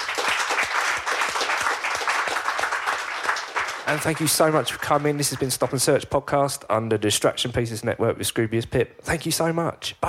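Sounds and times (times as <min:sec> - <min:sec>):
audience applause: 0:00.0 - 0:06.0
speech: 0:03.9 - 0:10.0.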